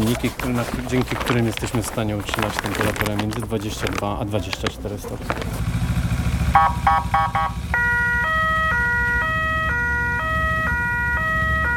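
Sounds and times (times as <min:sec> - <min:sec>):
motorcycle ambulance engine rumble: 0:00.0 - 0:11.7
speech: 0:00.1 - 0:05.8, 0:06.6 - 0:07.6
motorcycle ambulance siren: 0:06.5 - 0:11.7.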